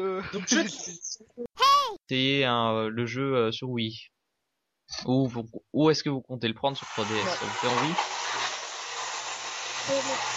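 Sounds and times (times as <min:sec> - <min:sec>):
speech: 0:00.0 - 0:01.5, 0:02.1 - 0:04.2, 0:04.9 - 0:08.2, 0:09.8 - 0:10.3
vacuum cleaner running: 0:06.7 - 0:10.3.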